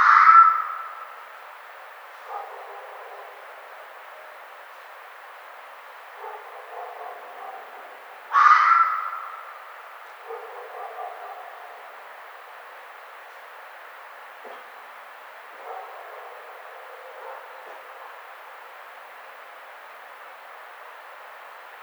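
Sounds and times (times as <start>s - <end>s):
red fox rasping scream: 0.0s - 0.9s, 8.3s - 9.4s.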